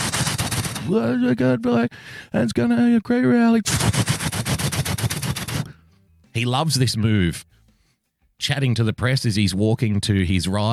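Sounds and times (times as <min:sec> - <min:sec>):
helicopter rotary engine noise: 0:00.0 - 0:00.9, 0:03.7 - 0:05.7
speech: 0:00.9 - 0:04.1, 0:06.4 - 0:07.5, 0:08.4 - 0:10.7.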